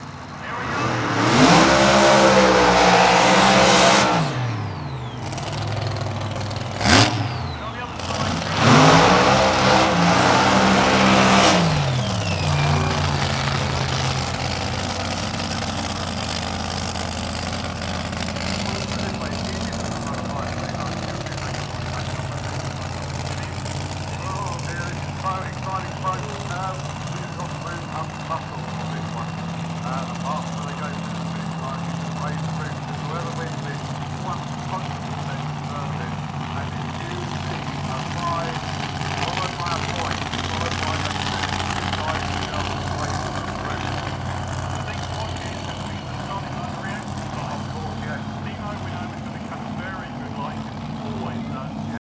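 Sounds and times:
drag racer burnouts: 0.0s - 52.0s.

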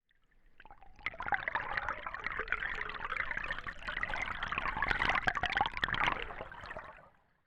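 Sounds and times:
running water recorded with a hydrophone: 0.1s - 7.4s.

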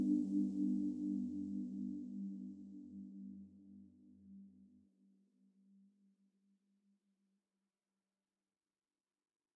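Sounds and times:
chill background music: 0.0s - 4.1s.

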